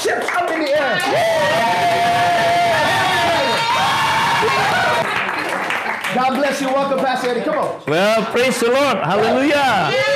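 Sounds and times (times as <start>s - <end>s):
large crowd cheering in welcome: 0.0s - 6.5s, 9.0s - 10.1s
speech: 6.5s - 10.1s.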